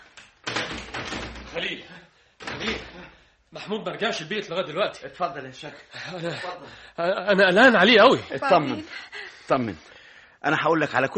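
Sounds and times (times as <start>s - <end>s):
door being opened: 0.4s - 1.8s, 2.4s - 3.0s
speech: 1.6s - 2.7s, 3.5s - 11.1s.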